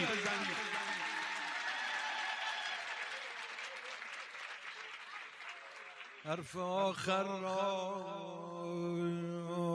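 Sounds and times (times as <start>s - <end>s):
audience applause: 0.0s - 6.6s
speech: 6.2s - 9.6s.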